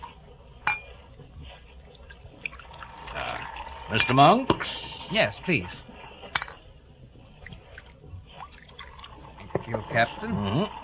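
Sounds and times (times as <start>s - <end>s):
glass clink: 0.6s - 0.9s, 4.0s - 4.6s, 6.3s - 6.6s
drink being poured into a glass: 2.6s - 3.7s
speech: 3.9s - 5.9s, 10.0s - 10.8s.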